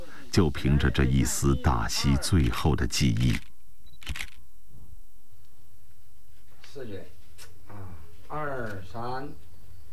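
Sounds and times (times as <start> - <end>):
hiss: 0.0 - 9.9
speech: 0.4 - 4.3, 6.8 - 7.2, 8.3 - 9.5
camera shutter clicking as a photo is taken: 3.2 - 4.4.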